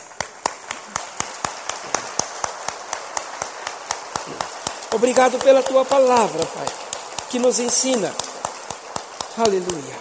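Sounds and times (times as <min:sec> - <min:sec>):
audience applause: 0:00.0 - 0:09.9
speech: 0:05.0 - 0:08.3, 0:09.4 - 0:09.9.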